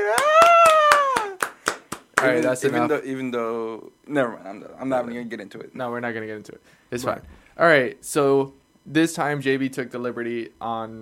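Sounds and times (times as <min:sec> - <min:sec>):
applause, hands clapping: 0:00.0 - 0:02.8
speech: 0:02.2 - 0:11.0.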